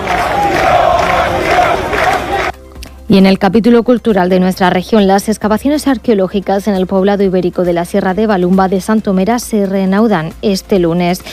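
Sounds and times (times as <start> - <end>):
large crowd chanting in unison: 0.0 - 2.6
speech: 3.1 - 11.3.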